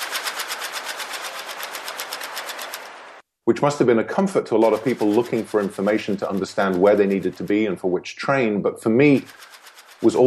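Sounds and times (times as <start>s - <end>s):
split-flap departure board fluttering: 0.0s - 3.2s, 4.6s - 7.8s, 9.0s - 10.2s
speech: 3.5s - 10.2s.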